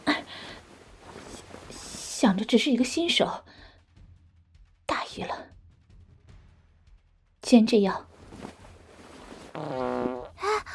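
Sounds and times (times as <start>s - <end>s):
speech: 2.2s - 3.5s, 7.5s - 8.1s
fart in a cartoon street-wrestling match: 9.4s - 10.4s.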